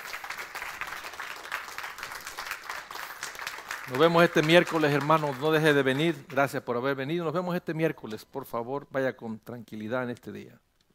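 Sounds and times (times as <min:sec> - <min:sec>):
audience applauding: 0:00.0 - 0:06.6
speech: 0:03.9 - 0:10.7.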